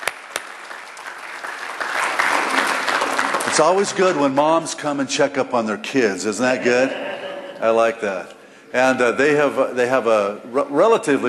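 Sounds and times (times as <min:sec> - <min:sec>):
church congregation clapping to welcome a visiting mother: 0:00.0 - 0:04.6
speech: 0:03.6 - 0:11.2.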